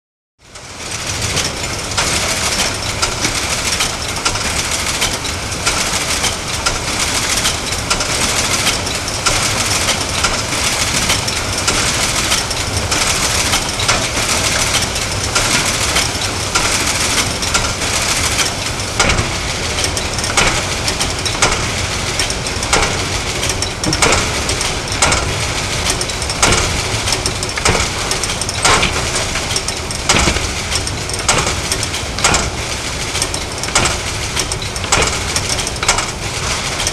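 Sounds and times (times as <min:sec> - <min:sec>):
light clanky factory machine: 0:00.4 - 0:36.9.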